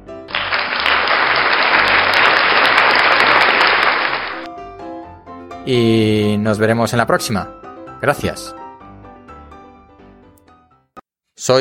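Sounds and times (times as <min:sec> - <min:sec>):
crowd applause sound effect: 0:00.3 - 0:04.5
speech: 0:05.6 - 0:08.6, 0:11.4 - 0:11.6.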